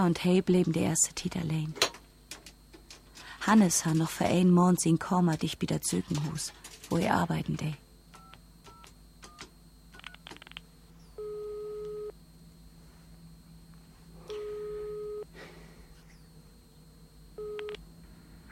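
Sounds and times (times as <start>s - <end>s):
speech: 0.0s - 1.9s, 3.4s - 7.8s
answering machine beep: 8.1s - 12.2s, 14.3s - 15.3s, 17.4s - 17.8s.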